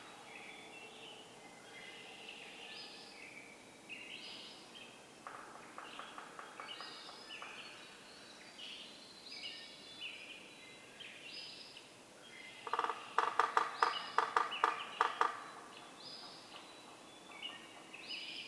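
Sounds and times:
Yellow-bellied Sapsucker drumming: 5.2 - 7.8, 12.6 - 18.0.

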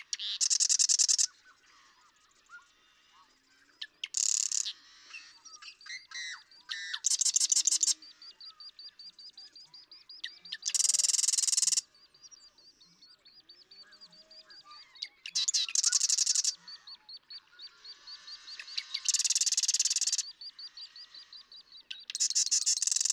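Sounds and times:
other small birds calling faintly: 0.0 - 23.1
marsh wren song: 0.2 - 1.3, 10.7 - 11.8, 19.1 - 20.2, 22.1 - 23.1.

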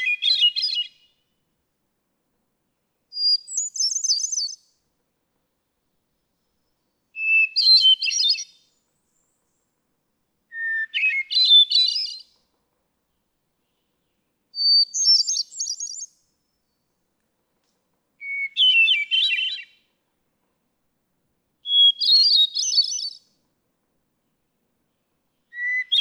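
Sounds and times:
hermit thrush singing: 0.0 - 1.1, 3.1 - 4.6, 7.2 - 8.8, 10.5 - 12.3, 13.6 - 16.8, 18.2 - 19.8, 21.6 - 23.3, 25.4 - 26.0.

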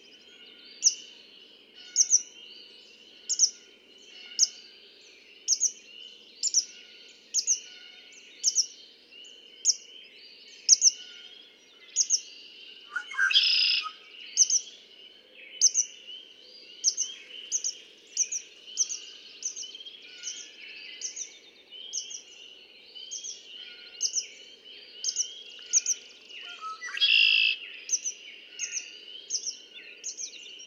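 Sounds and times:
other birds chirping: 0.0 - 30.6
red-winged blackbird buzzy trill: 12.9 - 14.6, 25.1 - 28.8.

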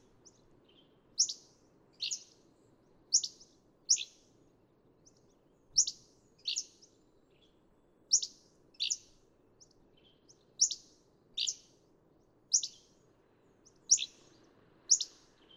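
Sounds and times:
Hammond's flycatcher calling with sharp chips and burry notes: 1.2 - 2.4, 3.1 - 4.3, 5.7 - 6.9, 8.1 - 9.2, 10.6 - 11.8, 12.5 - 13.0, 13.7 - 15.5.

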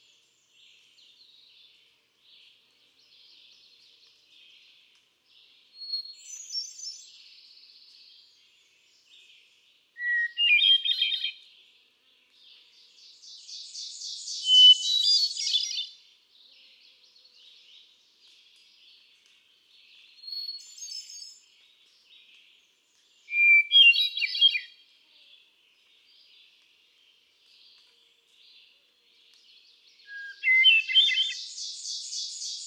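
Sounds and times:
Hermit thrush singing fluty phrases: 10.0 - 11.4, 12.4 - 16.7, 19.8 - 26.6, 27.4 - 32.6.

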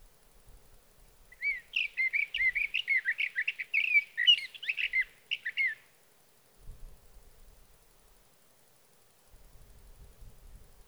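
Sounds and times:
sage thrasher warbling song: 1.3 - 5.9.

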